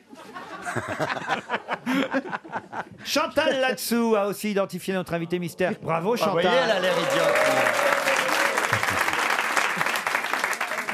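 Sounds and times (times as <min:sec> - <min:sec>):
laughter: 0:00.0 - 0:03.6
speech: 0:00.7 - 0:08.1
audience applause: 0:06.4 - 0:10.9.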